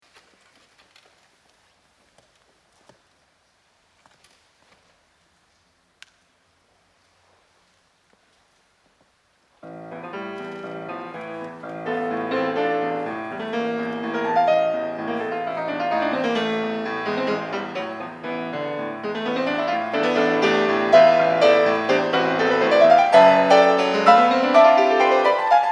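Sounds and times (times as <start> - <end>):
piano sonata: 9.6 - 25.6.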